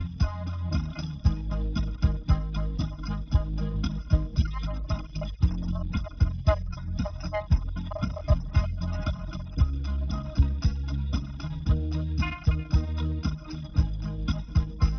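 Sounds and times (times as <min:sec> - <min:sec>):
music: 0:00.0 - 0:14.9.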